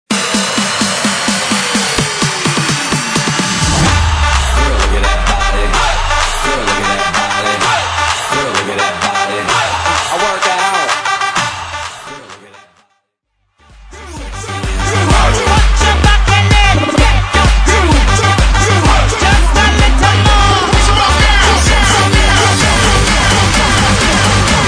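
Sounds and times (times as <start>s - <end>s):
drums: 0.1s - 11.7s, 13.7s - 24.6s.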